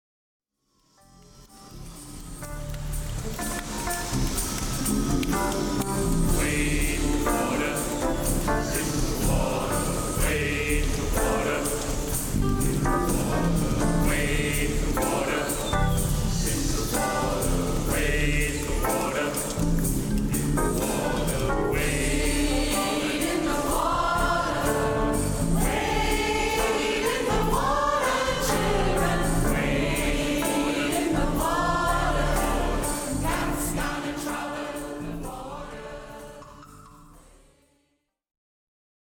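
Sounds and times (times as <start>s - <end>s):
gospel singing: 2.4s - 37.8s.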